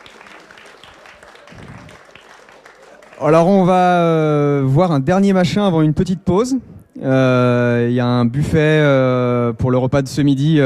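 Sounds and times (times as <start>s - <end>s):
audience applause: 0.0s - 3.8s
speech: 3.2s - 10.6s.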